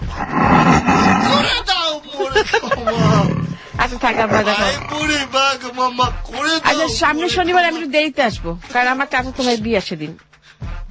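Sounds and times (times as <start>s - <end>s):
tiger roar sound effect: 0.0s - 1.6s, 2.8s - 5.4s
laughter: 1.3s - 5.2s
speech: 4.0s - 10.3s.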